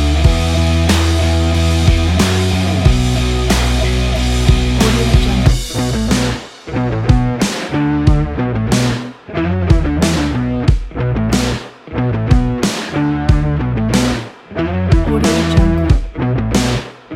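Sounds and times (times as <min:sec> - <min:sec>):
powerful indie rock music: 0:00.0 - 0:17.1.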